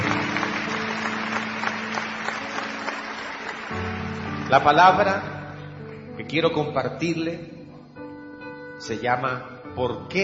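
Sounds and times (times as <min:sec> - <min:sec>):
large crowd applause: 0:00.0 - 0:05.3
speech: 0:04.5 - 0:05.3, 0:06.2 - 0:07.6, 0:08.8 - 0:10.2.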